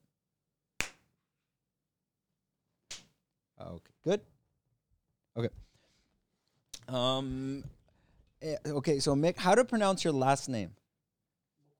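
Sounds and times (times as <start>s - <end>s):
single hand clap: 0.8s - 1.1s, 2.9s - 3.2s
speech: 3.8s - 4.4s, 5.4s - 5.7s, 6.9s - 7.8s, 8.4s - 10.8s.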